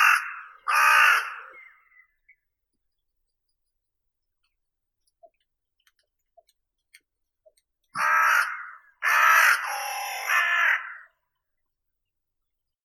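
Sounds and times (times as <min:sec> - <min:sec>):
Carrion crow Corvus corone calling: 0:00.0 - 0:02.1, 0:08.0 - 0:11.2.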